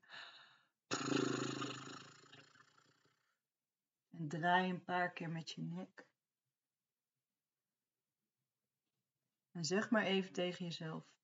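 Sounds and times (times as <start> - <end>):
breathy lip trill, air blown through loose lips like a horse: 0.9 - 2.1
speech: 4.2 - 6.1, 9.6 - 11.2.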